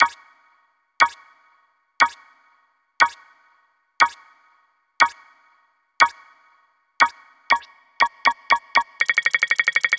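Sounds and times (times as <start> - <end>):
countdown: 0.0 - 0.3, 1.0 - 1.3, 2.0 - 2.3, 3.0 - 3.3, 4.0 - 4.3, 5.0 - 5.3, 6.0 - 6.3, 7.0 - 9.9.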